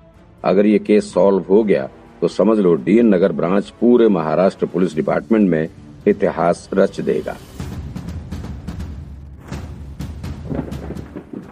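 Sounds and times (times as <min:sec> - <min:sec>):
speech: 0:00.4 - 0:07.5
thunder: 0:09.4 - 0:11.5
heavy rain: 0:10.3 - 0:11.5.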